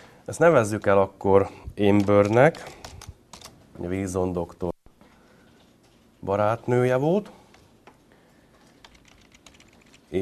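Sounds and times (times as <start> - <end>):
speech: 0.3 - 2.8, 3.8 - 4.7, 6.2 - 7.4
computer keyboard typing: 1.8 - 3.6, 7.5 - 10.2.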